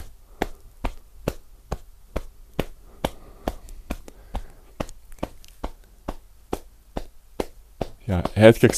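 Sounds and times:
hand tapping on upper back: 0:00.0 - 0:08.7
speech: 0:08.1 - 0:08.7.

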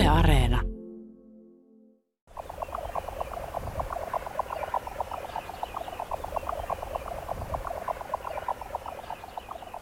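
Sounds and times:
speech: 0:00.1 - 0:00.7
jack snipe display call: 0:02.3 - 0:09.7.

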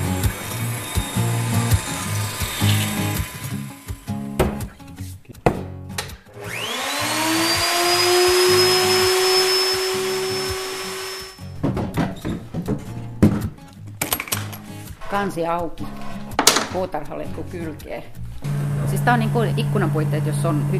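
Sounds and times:
vacuum pump sucking air from membrane press: 0:00.0 - 0:04.5, 0:06.3 - 0:11.5, 0:18.4 - 0:20.7
clunks and handling noises: 0:11.5 - 0:16.9
speech: 0:15.2 - 0:16.0, 0:16.7 - 0:18.2, 0:18.9 - 0:20.7.

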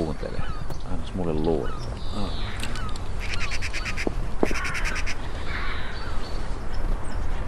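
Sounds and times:
gulls calling: 0:00.0 - 0:07.4
speech: 0:01.2 - 0:02.5.

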